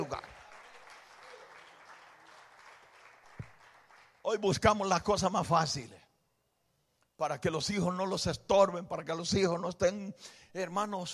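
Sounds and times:
crowd applause: 0:00.0 - 0:04.2
speech: 0:04.3 - 0:06.0, 0:07.2 - 0:11.1.

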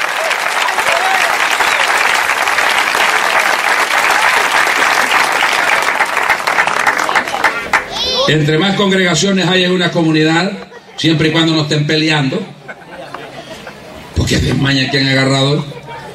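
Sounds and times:
audience applause: 0:00.0 - 0:08.1
speech: 0:08.3 - 0:12.5, 0:14.3 - 0:15.8
laughter: 0:12.5 - 0:14.2.

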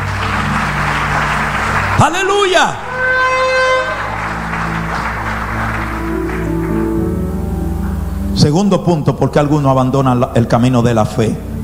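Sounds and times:
crowd clapping: 0:00.0 - 0:08.1
speech: 0:02.0 - 0:02.8, 0:08.4 - 0:11.5.

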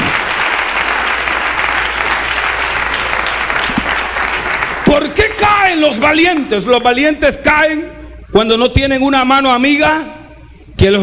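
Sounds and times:
loud audience applause: 0:00.0 - 0:06.1
speech: 0:05.4 - 0:10.2, 0:10.8 - 0:11.0.

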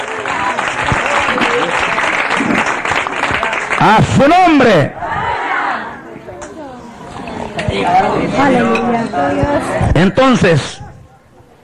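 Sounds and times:
audience applause: 0:00.0 - 0:04.2
speech: 0:03.8 - 0:05.0, 0:07.7 - 0:10.8.

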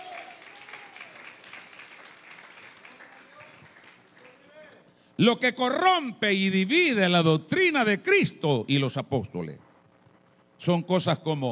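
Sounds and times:
audience applause: 0:00.0 - 0:04.7
speech: 0:05.2 - 0:09.6, 0:10.6 - 0:11.5.

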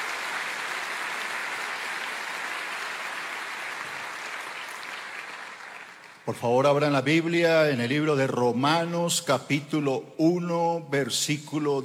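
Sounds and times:
audience applauding in welcome: 0:00.0 - 0:06.3
speech: 0:06.3 - 0:11.8.

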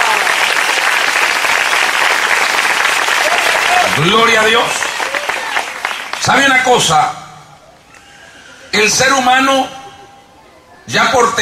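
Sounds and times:
church audience applauding: 0:00.0 - 0:06.8
speech: 0:04.0 - 0:04.8, 0:06.2 - 0:07.2, 0:08.7 - 0:09.8, 0:10.9 - 0:11.4.

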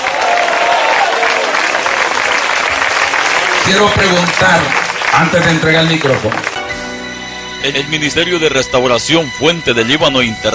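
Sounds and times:
audience applause: 0:00.0 - 0:06.7
speech: 0:03.7 - 0:06.5, 0:07.6 - 0:10.5.

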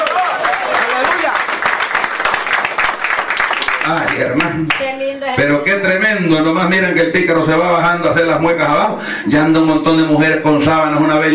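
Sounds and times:
audience applauding: 0:00.0 - 0:04.9
speech: 0:03.9 - 0:11.3.

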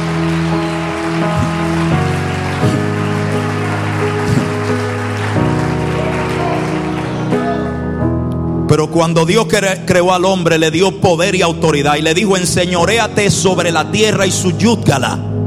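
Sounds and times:
audience applauding: 0:00.0 - 0:07.9
speech: 0:08.9 - 0:15.3.

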